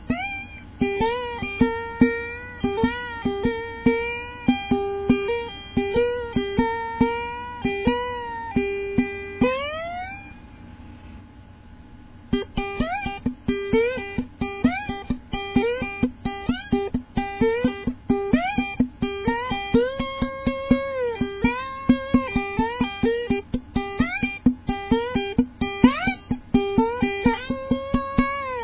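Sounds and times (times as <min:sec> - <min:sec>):
ukulele single string struck with a stick: 0:00.0 - 0:10.3, 0:12.3 - 0:28.6.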